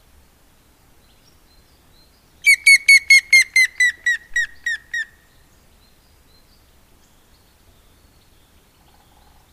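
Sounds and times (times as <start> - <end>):
grey-headed woodpecker giving loud ringing whistled notes: 2.5 - 5.1.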